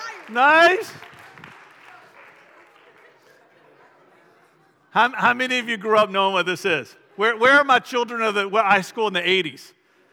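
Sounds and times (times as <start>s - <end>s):
audience applause for volunteers: 0.0s - 3.3s
speech: 0.3s - 1.2s, 5.0s - 9.8s.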